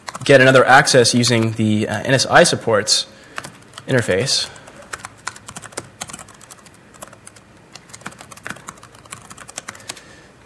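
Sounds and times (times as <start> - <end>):
typing on a computer keyboard: 0.0 - 0.6, 3.4 - 10.0
speech: 0.3 - 4.6.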